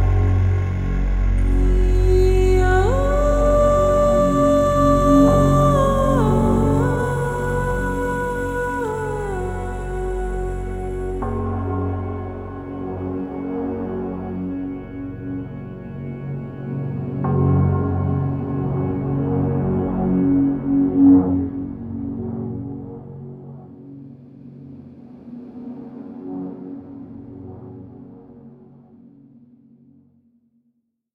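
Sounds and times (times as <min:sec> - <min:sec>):
vocal music: 0:00.0 - 0:22.2.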